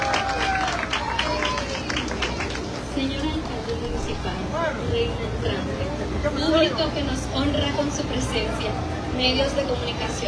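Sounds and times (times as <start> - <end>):
crowd applause and cheers: 0.0 - 4.9
murmured voices: 0.0 - 9.7
speech: 6.6 - 10.2.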